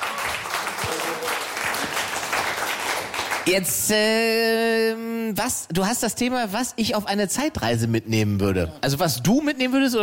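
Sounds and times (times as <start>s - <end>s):
audience applause: 0.0s - 3.5s
speech: 3.4s - 10.0s.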